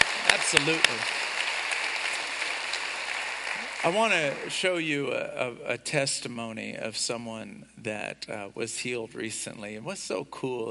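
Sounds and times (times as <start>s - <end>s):
audience round of applause: 0.0s - 4.9s
speech: 0.3s - 1.3s, 3.8s - 10.6s.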